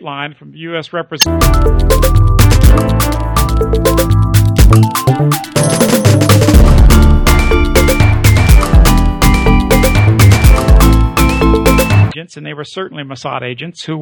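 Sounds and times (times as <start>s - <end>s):
funana beat: 1.2s - 12.2s.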